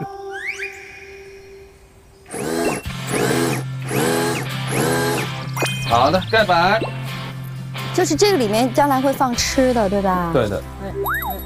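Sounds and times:
faint high chirping: 0.3s - 7.6s, 11.0s - 11.4s
power tool whirring while driving a nail: 2.3s - 5.6s
speech: 5.9s - 6.9s, 8.0s - 11.4s.

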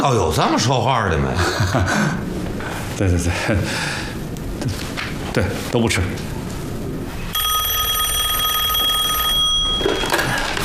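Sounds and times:
speech: 0.0s - 6.4s
telephone ringing: 7.3s - 10.6s.

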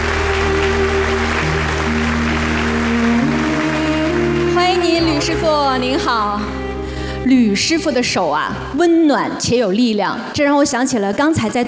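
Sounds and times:
audience applause: 0.0s - 5.4s
speech: 5.5s - 6.5s, 7.3s - 11.6s.

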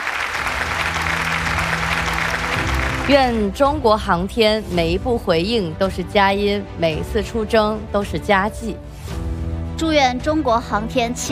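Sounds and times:
audience applause: 0.0s - 3.5s
speech: 3.1s - 9.1s, 9.8s - 11.2s.

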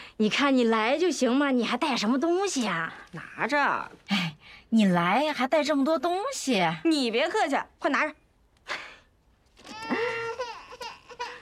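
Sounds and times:
speech: 0.2s - 8.8s
baby crying: 9.6s - 11.4s.

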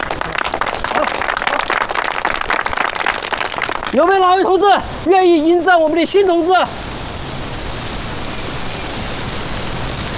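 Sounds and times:
crowd group applause: 0.0s - 4.2s
speech: 3.9s - 6.8s.

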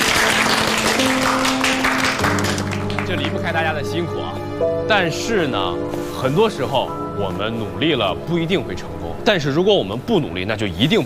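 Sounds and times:
applause: 0.0s - 3.6s
speech: 3.1s - 11.0s.

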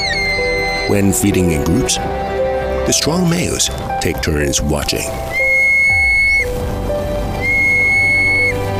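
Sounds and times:
Chinese monal pheasant high-pitched calls: 0.0s - 1.7s, 5.2s - 6.6s, 7.3s - 8.7s
speech: 0.9s - 5.4s.

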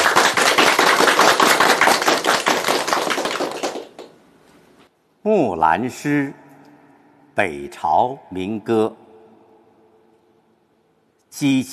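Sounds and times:
audience applause: 0.0s - 4.1s
speech: 5.2s - 6.4s, 7.4s - 9.0s, 11.4s - 11.7s.

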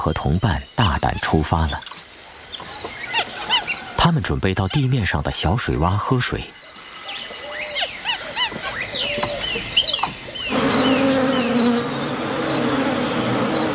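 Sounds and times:
speech: 0.0s - 1.9s, 4.0s - 6.6s
bird chirps and whistles: 0.0s - 13.7s
bees buzzing around a water puddle: 7.6s - 13.7s.

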